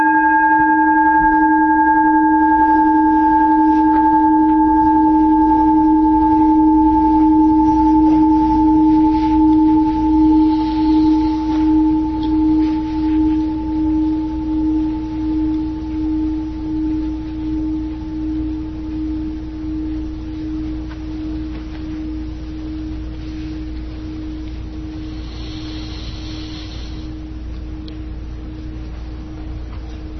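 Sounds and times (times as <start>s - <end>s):
meditation bell rung to start sitting: 0.0s - 19.4s.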